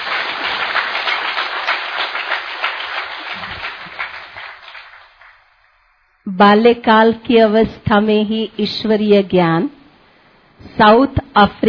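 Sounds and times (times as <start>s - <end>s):
crowd applauding: 0.0s - 5.7s
speech: 6.4s - 9.8s, 10.6s - 11.6s.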